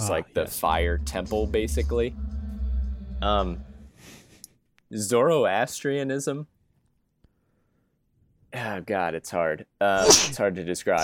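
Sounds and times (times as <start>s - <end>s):
speech: 0.0s - 2.4s, 3.2s - 4.2s, 4.9s - 6.5s, 8.5s - 11.0s
sneeze: 10.0s - 10.4s.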